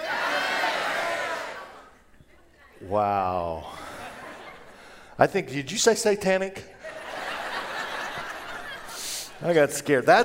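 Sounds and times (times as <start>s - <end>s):
crowd shouting: 0.0s - 2.0s
speech: 2.9s - 3.9s, 5.2s - 7.0s, 9.4s - 10.2s
laughter: 3.7s - 5.1s, 6.7s - 9.5s.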